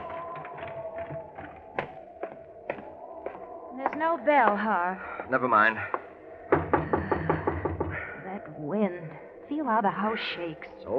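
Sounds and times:
speech: 4.0 - 6.0, 8.7 - 10.9
knocking on a door: 6.5 - 8.1.

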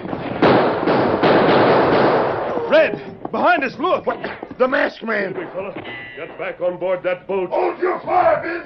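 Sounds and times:
gunfire in a shootout: 0.2 - 2.6
speech: 3.3 - 8.6.

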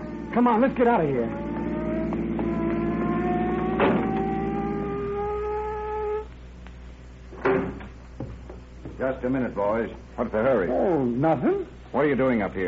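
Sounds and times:
car engine humming as the car pulls up: 0.0 - 6.3
speech: 0.4 - 1.5, 9.1 - 12.6.

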